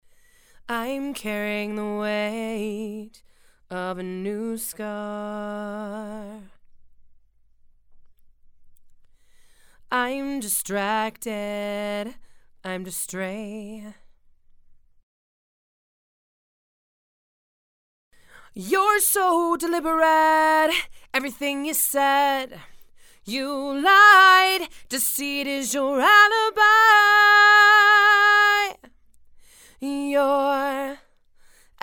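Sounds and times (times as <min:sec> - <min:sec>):
female vocals: 0:00.6 - 0:06.6, 0:09.9 - 0:14.1, 0:18.4 - 0:28.9, 0:29.7 - 0:31.1.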